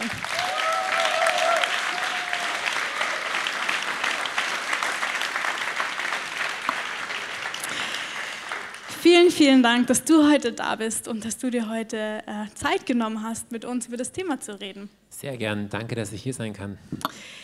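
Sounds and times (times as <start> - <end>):
applause: 0.0 - 9.5
speech: 9.1 - 17.4.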